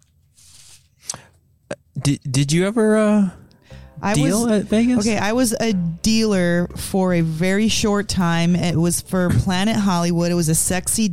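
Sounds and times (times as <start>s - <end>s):
deck of playing cards Vegas shuffle: 0.0s - 1.2s
speech: 2.0s - 3.4s, 4.0s - 11.1s.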